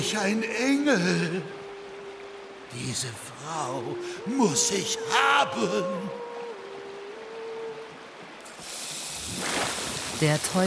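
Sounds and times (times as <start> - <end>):
speech: 0.1 - 1.6, 2.7 - 6.2, 10.2 - 10.6
hissing steam: 8.4 - 10.6.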